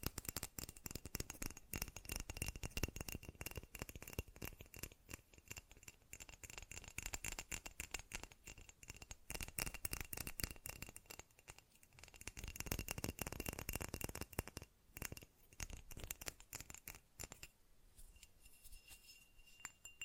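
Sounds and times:
fast dry tapping with glassy rattle: 0.0s - 17.5s.

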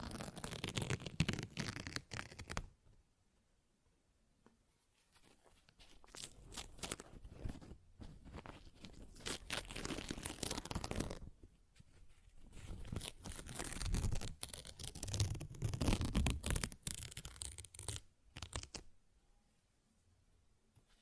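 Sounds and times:
paper ripping and tearing: 0.0s - 2.6s, 9.0s - 11.2s, 12.8s - 18.8s.

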